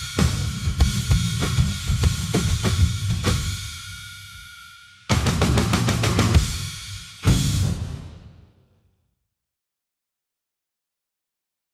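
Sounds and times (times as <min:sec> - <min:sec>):
drums: 0:00.0 - 0:08.8.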